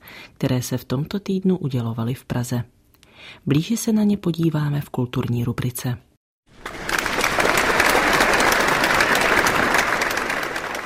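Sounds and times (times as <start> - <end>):
speech: 0.4 - 6.1
audience applause at an awards ceremony: 6.5 - 10.8.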